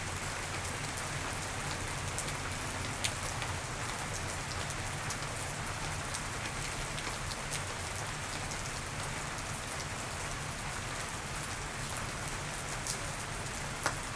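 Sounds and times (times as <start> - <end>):
summer rain: 0.0 - 14.1.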